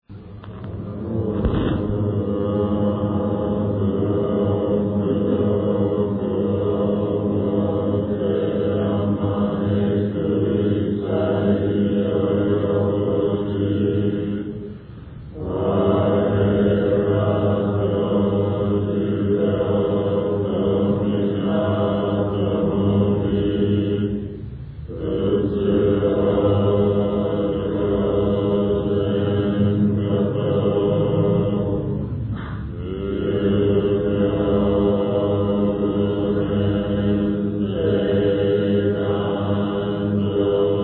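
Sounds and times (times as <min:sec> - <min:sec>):
end chant: 0:00.0 - 0:40.8.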